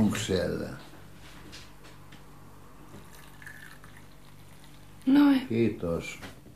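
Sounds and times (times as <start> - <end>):
speech: 0.2 - 0.9, 5.5 - 6.3
coffee being poured into cup: 2.9 - 5.5.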